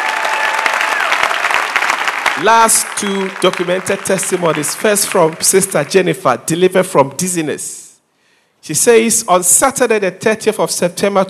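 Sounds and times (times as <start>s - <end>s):
audience clapping: 0.0s - 6.0s
speech: 2.4s - 7.8s, 8.6s - 11.2s.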